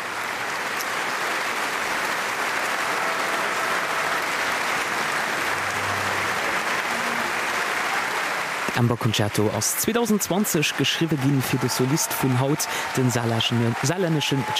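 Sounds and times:
large audience applause for the composer: 0.0 - 14.5
speech: 8.8 - 14.5.

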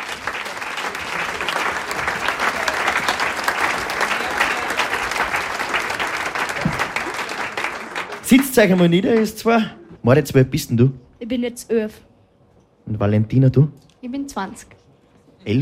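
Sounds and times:
audience applause: 0.0 - 9.7
speech: 8.3 - 12.1, 12.9 - 14.8, 15.4 - 15.6.

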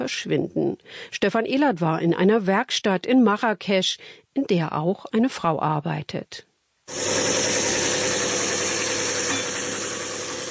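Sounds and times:
speech: 0.0 - 7.4
sanding a wooden lute slat in a workshop in Marrakesh: 6.9 - 10.4.

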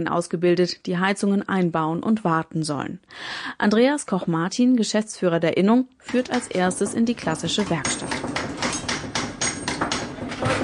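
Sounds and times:
speech: 0.0 - 8.3
hammer blows at workbenches in a heating and pipe-fitting training workshop: 6.1 - 10.6.

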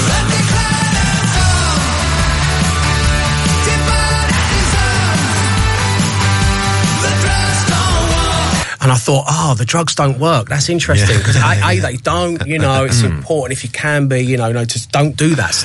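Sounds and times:
loud dense rock song with driving drums and guitars: 0.0 - 8.7
speech: 8.9 - 15.6
laughter: 10.9 - 13.2.

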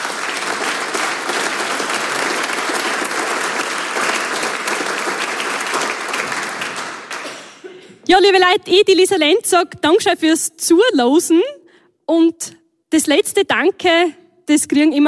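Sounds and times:
audience applause: 0.0 - 7.6
speech: 8.1 - 15.0.

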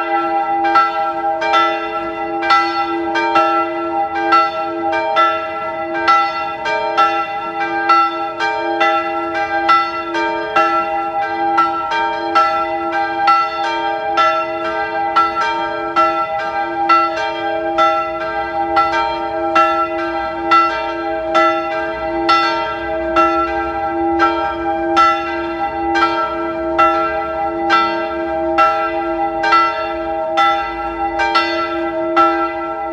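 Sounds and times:
church bells of the Bürgerspitalkirche ringing: 0.0 - 32.9.

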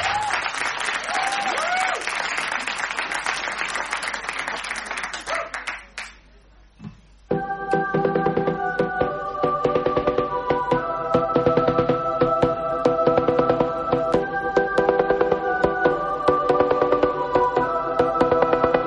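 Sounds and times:
scattered cheers and whistles: 0.0 - 2.1
loud audience applause: 0.0 - 6.1
music: 7.3 - 18.8.

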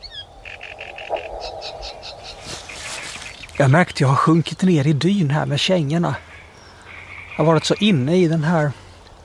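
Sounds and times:
great reed warbler singing in swamp: 0.0 - 8.8
speech: 3.6 - 6.3, 7.4 - 8.8.

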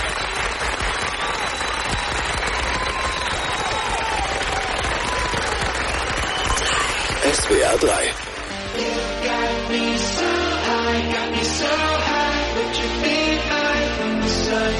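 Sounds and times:
applause as tribute to firefighters: 0.0 - 9.0
speech: 7.3 - 14.7.

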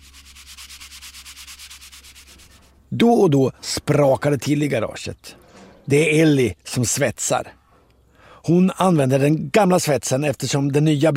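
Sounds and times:
sanding down body filler on a car repair in a garage: 0.0 - 2.8
speech: 2.9 - 7.6, 8.4 - 11.1.

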